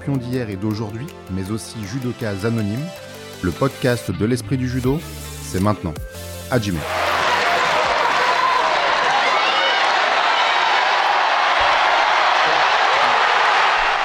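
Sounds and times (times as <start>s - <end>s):
speech: 0.0s - 7.0s
packed arena crowd cheering and applauding after a judo throw: 6.8s - 14.0s.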